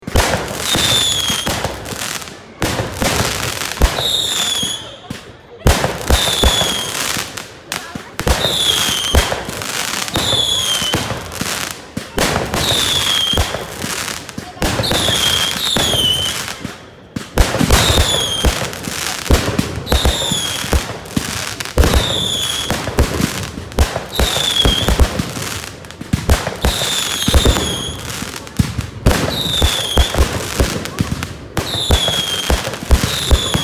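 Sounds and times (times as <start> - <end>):
firework whistling: 0.0 - 5.0, 5.8 - 7.4, 8.2 - 33.6.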